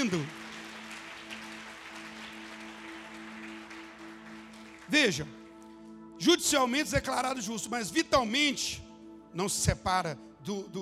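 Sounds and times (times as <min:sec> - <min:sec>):
speech: 0:00.0 - 0:00.4, 0:04.9 - 0:05.4, 0:06.2 - 0:10.8
audience applause: 0:00.0 - 0:05.2.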